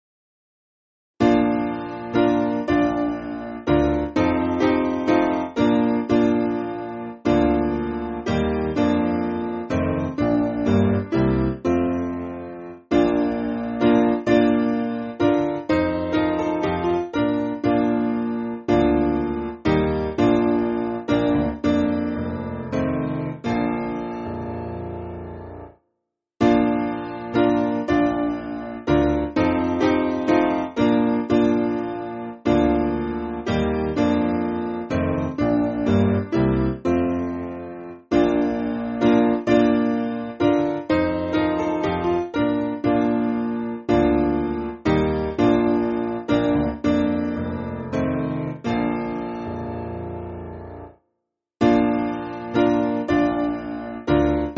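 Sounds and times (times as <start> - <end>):
piano backing music for churches: 1.2 - 25.8, 26.4 - 51.0, 51.6 - 54.5.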